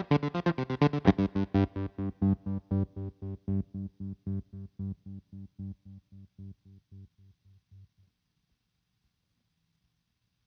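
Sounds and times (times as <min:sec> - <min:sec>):
fuzz guitar through Empress tremolo with square wave setting: 0:00.2 - 0:07.1.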